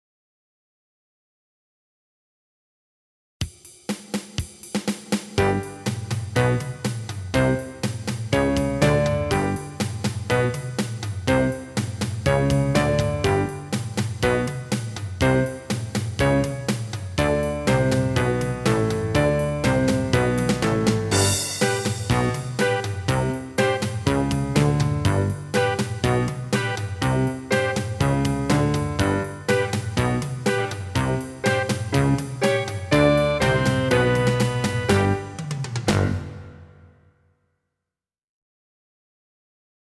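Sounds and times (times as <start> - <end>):
band playing slow half time: 5.4 - 36.8
piano: 5.4 - 37.0.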